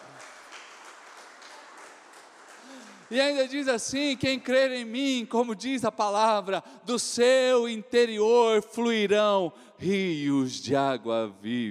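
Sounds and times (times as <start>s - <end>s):
crowd clapping: 0.0s - 4.6s
speech: 3.1s - 11.6s.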